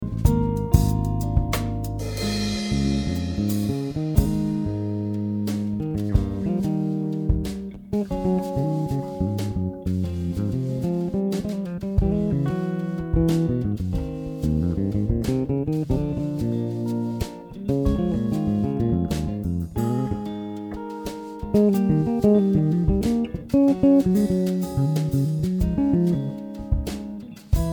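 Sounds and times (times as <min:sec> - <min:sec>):
bass solo: 0:00.0 - 0:27.7.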